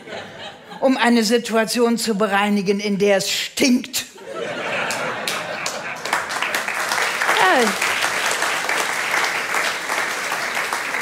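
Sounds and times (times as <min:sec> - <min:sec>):
laughter: 0:00.0 - 0:00.8, 0:04.2 - 0:08.0
speech: 0:00.8 - 0:04.1
audience applause: 0:04.8 - 0:11.0.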